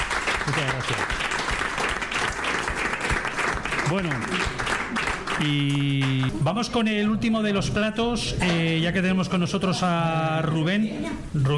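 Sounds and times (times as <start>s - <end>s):
applause: 0.0s - 6.4s
speech: 0.5s - 1.3s, 3.9s - 11.5s.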